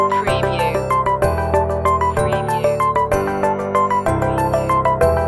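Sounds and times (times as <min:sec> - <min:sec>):
light signals loop: 0:00.1 - 0:05.2.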